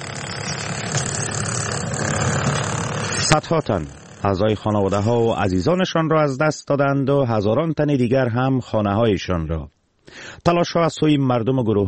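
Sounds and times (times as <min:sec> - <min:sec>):
heavy machinery clearing earthquake rubble: 0:00.0 - 0:05.6
speech: 0:03.4 - 0:11.8.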